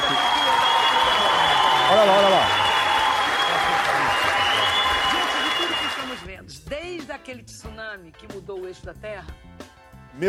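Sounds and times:
applause: 0:00.0 - 0:06.3
speech: 0:07.3 - 0:09.5.

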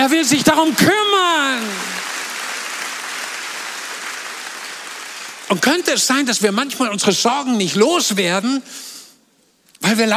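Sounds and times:
speech: 0:00.0 - 0:01.9, 0:05.5 - 0:08.9, 0:09.8 - 0:10.1
audience applause: 0:00.0 - 0:06.0.

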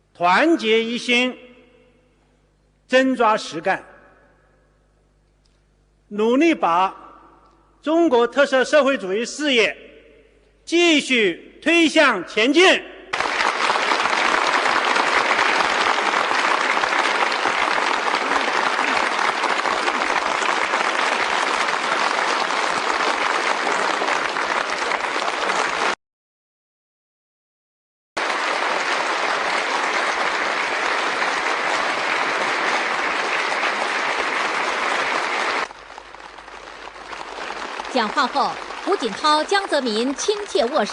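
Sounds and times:
speech: 0:00.2 - 0:01.4, 0:02.9 - 0:03.9, 0:06.1 - 0:07.0, 0:07.8 - 0:09.9, 0:10.7 - 0:12.9, 0:38.0 - 0:40.9
long warm applause from a large crowd: 0:13.1 - 0:26.0, 0:28.2 - 0:40.9.

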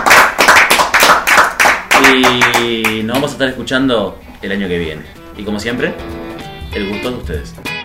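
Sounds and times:
applause: 0:00.0 - 0:03.3
speech: 0:02.1 - 0:06.2, 0:06.8 - 0:07.7.

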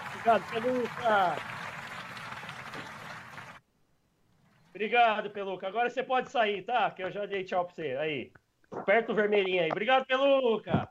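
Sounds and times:
audience applause: 0:00.0 - 0:03.6
speech: 0:00.2 - 0:01.6, 0:04.8 - 0:10.8.

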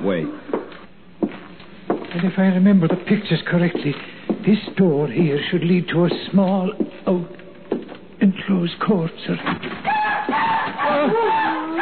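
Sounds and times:
speech: 0:00.1 - 0:00.5, 0:02.1 - 0:07.4, 0:08.4 - 0:11.3
night bird calling: 0:09.8 - 0:11.7.

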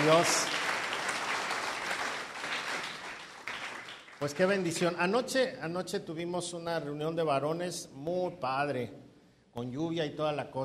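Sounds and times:
welcome applause from audience: 0:00.0 - 0:04.8
speech: 0:00.1 - 0:00.6, 0:04.2 - 0:09.0, 0:09.6 - 0:10.6.

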